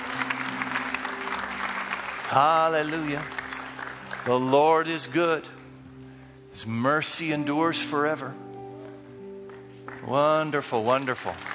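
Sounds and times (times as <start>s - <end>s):
church congregation clapping hands: 0.0s - 5.6s, 8.8s - 11.5s
speech: 2.3s - 3.4s, 4.2s - 5.6s, 6.6s - 8.4s, 10.0s - 11.5s.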